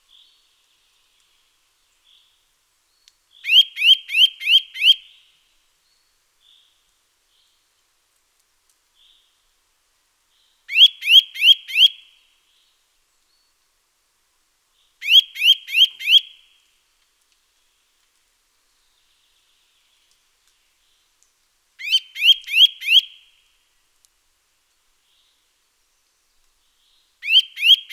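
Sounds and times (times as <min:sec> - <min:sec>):
Eurasian nuthatch Sitta europaea calling rising whistled notes: 0:03.5 - 0:05.0, 0:10.7 - 0:11.9, 0:15.0 - 0:16.3, 0:21.8 - 0:23.2, 0:27.2 - 0:27.9.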